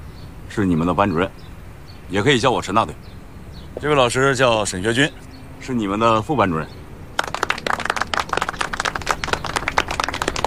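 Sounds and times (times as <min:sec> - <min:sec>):
speech: 0:00.5 - 0:03.1, 0:03.8 - 0:06.8
group clapping: 0:07.1 - 0:10.4.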